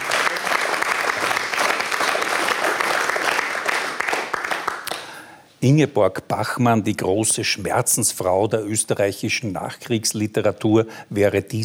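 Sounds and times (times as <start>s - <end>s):
audience applause: 0.0s - 5.3s
speech: 5.6s - 11.6s.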